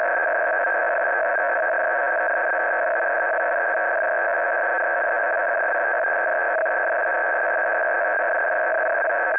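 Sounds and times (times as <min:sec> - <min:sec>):
audio frequency-shift keying tones 400-960: 0:00.1 - 0:09.3.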